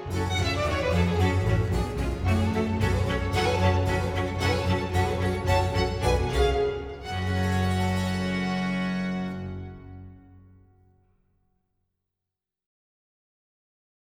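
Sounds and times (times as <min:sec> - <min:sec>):
string orchestra adagio in G minor: 0:00.0 - 0:10.6.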